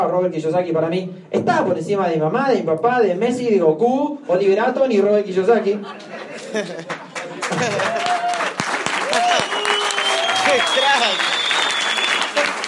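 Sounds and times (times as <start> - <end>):
speech: 0.0 - 8.2, 10.5 - 11.3
laughter: 5.6 - 8.3
audience applause: 6.8 - 12.6
scattered cheers: 7.6 - 12.5
high whistle: 9.3 - 12.4.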